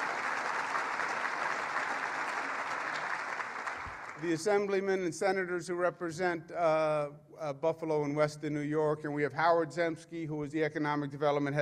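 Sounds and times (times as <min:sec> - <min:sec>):
round of applause: 0:00.0 - 0:04.4
speech: 0:04.2 - 0:11.6.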